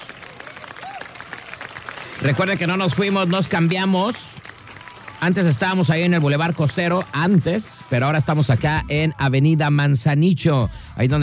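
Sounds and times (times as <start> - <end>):
applause from a group: 0.0 - 8.5
person whooping: 0.4 - 1.6
speech: 2.2 - 4.3, 5.2 - 11.2.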